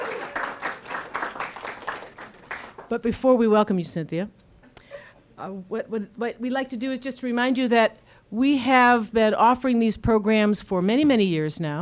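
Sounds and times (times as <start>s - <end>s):
audience applause: 0.0s - 2.9s
speech: 2.9s - 4.4s, 5.4s - 11.8s.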